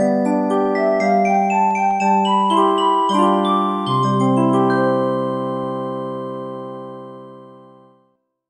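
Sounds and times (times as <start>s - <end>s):
circus music: 0.0s - 6.7s.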